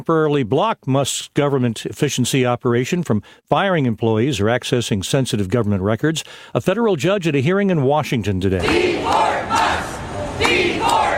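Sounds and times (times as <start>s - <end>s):
speech: 0.0s - 9.7s
protesters shouting at a rally in Tampa, Florida: 8.6s - 11.1s.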